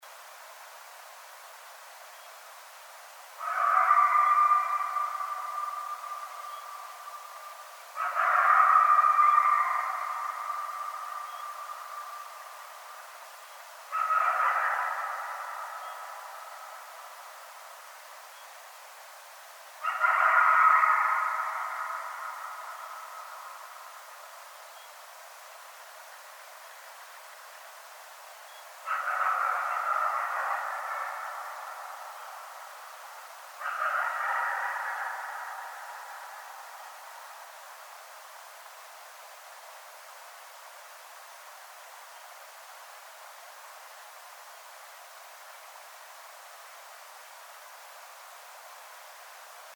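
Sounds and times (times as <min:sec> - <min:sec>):
coyotes howling: 0:03.4 - 0:17.7, 0:19.8 - 0:24.4, 0:28.8 - 0:38.4.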